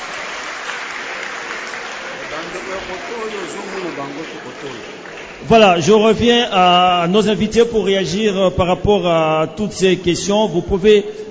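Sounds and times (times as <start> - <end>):
crowd applause: 0.0 - 6.2
speech: 2.4 - 11.3.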